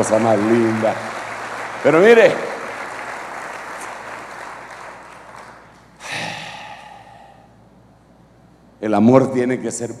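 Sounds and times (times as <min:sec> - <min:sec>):
speech: 0:00.0 - 0:01.1, 0:01.8 - 0:02.5, 0:08.8 - 0:09.9
audience applauding: 0:00.0 - 0:06.6.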